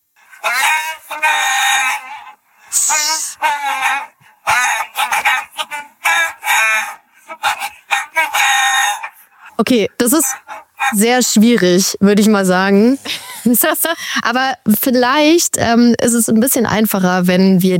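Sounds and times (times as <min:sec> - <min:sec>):
song melody imitated with chicken-like clucks and squawks: 0:00.2 - 0:11.6
speech: 0:09.7 - 0:17.7.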